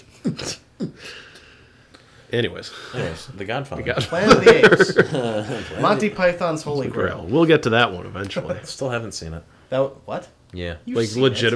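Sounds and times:
person sneezing: 0.0s - 1.3s
speech: 2.3s - 11.5s
laughter: 3.8s - 6.4s.

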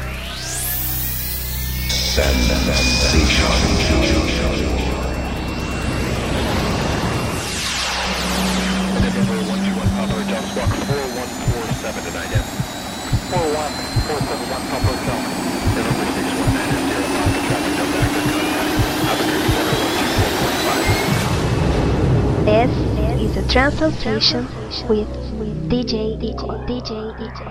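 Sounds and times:
aircraft jet engines spooling up for takeoff: 0.0s - 21.9s
speech: 2.2s - 4.8s, 13.3s - 21.1s, 22.5s - 27.4s
electronic dance beat: 8.4s - 21.2s.

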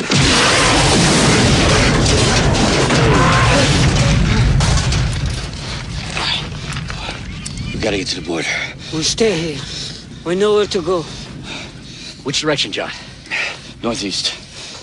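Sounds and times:
gunship exploding in a Rambo action film: 0.0s - 8.2s
speech: 7.9s - 11.2s, 12.2s - 13.0s, 13.8s - 14.4s.

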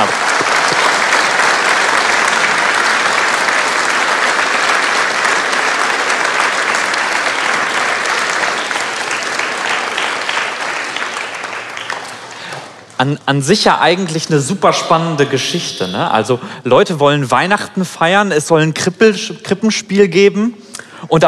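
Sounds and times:
big audience applause: 0.0s - 12.9s
speech: 13.0s - 21.2s.

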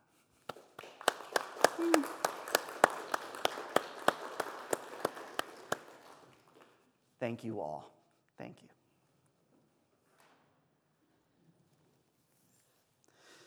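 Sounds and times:
audience clapping: 0.5s - 6.8s
brief vocal sound: 1.8s - 2.1s
speech: 7.2s - 8.8s.

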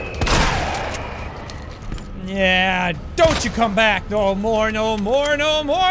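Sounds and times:
shotgun blasts in a video game: 0.2s - 1.2s
speech: 2.9s - 5.8s.

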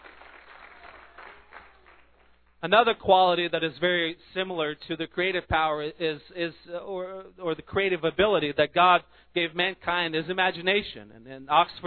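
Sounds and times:
audience clapping hands in praise: 0.0s - 2.6s
speech: 2.6s - 11.8s.

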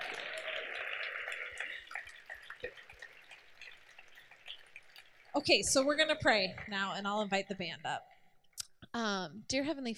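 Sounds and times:
audience applause: 0.0s - 3.0s
speech: 5.4s - 8.1s, 9.0s - 9.9s.

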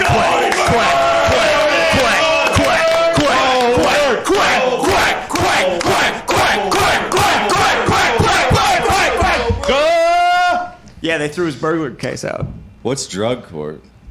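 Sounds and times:
studio audience cheering a drug court graduation: 0.0s - 10.8s
speech: 11.2s - 13.9s.

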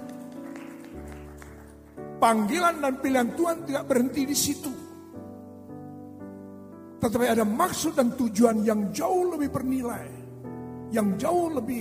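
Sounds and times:
crowd clapping: 0.0s - 2.0s
speech: 2.2s - 4.8s, 7.0s - 10.2s, 10.9s - 11.8s.

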